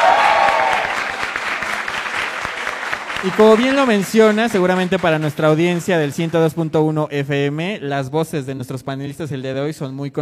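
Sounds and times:
audience applause: 0:00.0 - 0:06.5
speech: 0:03.2 - 0:10.2.

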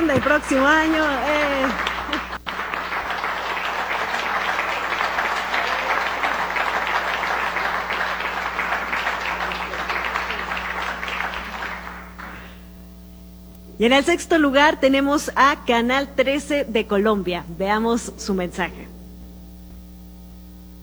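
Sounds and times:
audience applause: 0:00.0 - 0:12.6
speech: 0:00.1 - 0:02.2, 0:13.8 - 0:19.0.

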